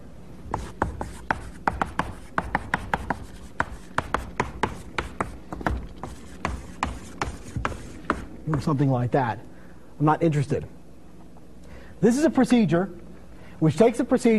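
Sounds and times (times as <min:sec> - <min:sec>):
pen writing on paper: 0:00.6 - 0:08.7
speech: 0:08.5 - 0:10.8, 0:12.0 - 0:13.0, 0:13.6 - 0:14.3.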